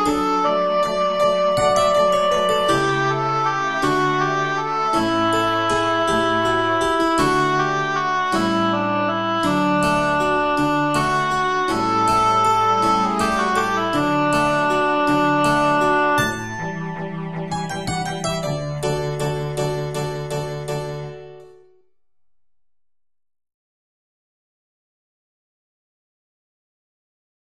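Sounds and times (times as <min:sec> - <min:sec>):
lullaby: 0:00.0 - 0:21.6.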